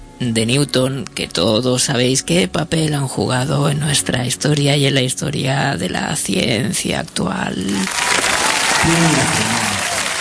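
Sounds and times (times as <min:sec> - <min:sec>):
speech: 0:00.2 - 0:08.2, 0:08.8 - 0:09.8
crowd applause in honour of Newton: 0:07.7 - 0:10.1.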